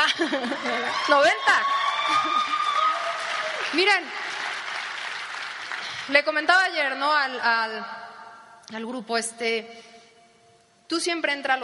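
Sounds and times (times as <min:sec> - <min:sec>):
laughter: 0:00.0 - 0:01.3
speech: 0:00.2 - 0:02.6, 0:03.7 - 0:04.2, 0:06.1 - 0:08.1, 0:08.7 - 0:09.9, 0:10.9 - 0:11.6
seminar audience applause: 0:00.4 - 0:06.1.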